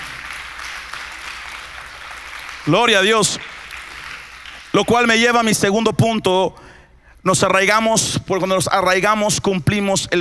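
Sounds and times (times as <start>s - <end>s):
audience applause: 0.0s - 4.7s
speech: 2.6s - 3.5s, 4.7s - 6.6s, 7.2s - 10.1s.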